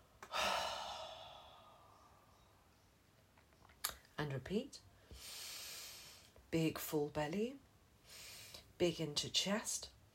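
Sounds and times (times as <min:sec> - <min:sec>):
person exhaling long and loose through the mouth in a guided breathing exercise: 0:00.2 - 0:02.1
speech: 0:04.2 - 0:05.3, 0:06.5 - 0:08.2, 0:08.8 - 0:10.0.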